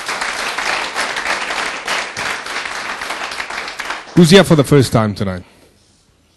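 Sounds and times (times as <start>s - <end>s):
church congregation clapping after worship: 0.0s - 5.0s
speech: 4.2s - 5.6s.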